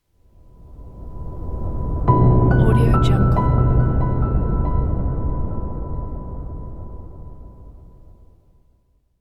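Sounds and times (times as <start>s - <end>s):
elegant cinematic logo music: 1.5s - 7.8s.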